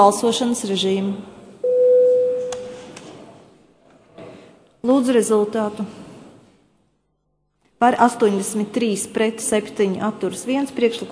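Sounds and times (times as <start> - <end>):
speech: 0.0 - 1.4, 4.8 - 6.0, 7.8 - 11.1
Latvian parliament electronic bell tone before a vote: 1.6 - 2.8.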